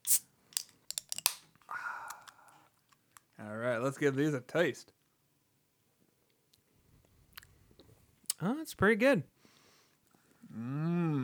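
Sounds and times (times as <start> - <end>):
Wayfinder brewery beers being opened: 0.0 - 3.3
speech: 3.4 - 5.0, 8.7 - 9.4, 10.6 - 10.9.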